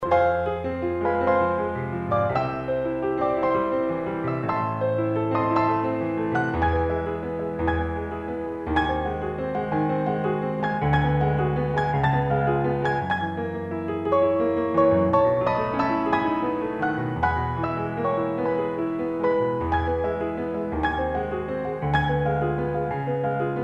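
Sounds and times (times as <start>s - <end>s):
piano: 0.0s - 23.6s.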